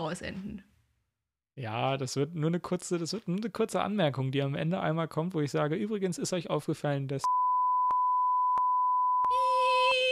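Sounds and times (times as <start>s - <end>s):
speech: 0.0s - 0.7s, 1.6s - 7.4s
censor bleep tone: 7.2s - 9.7s.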